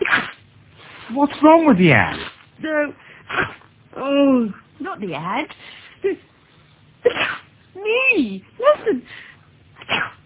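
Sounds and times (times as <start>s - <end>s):
sneeze: 0.0s - 0.4s, 3.3s - 3.6s, 7.0s - 7.5s, 9.8s - 10.2s
speech: 1.1s - 6.3s, 7.8s - 9.2s.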